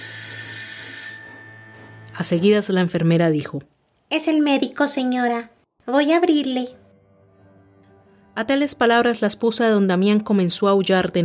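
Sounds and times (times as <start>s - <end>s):
doorbell ringing: 0.0s - 2.3s
speech: 2.2s - 6.8s, 8.4s - 11.2s.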